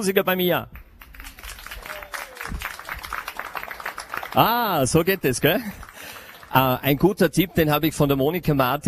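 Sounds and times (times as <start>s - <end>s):
speech: 0.0s - 0.8s, 4.4s - 5.8s, 6.5s - 8.8s
audience applause: 1.2s - 6.9s.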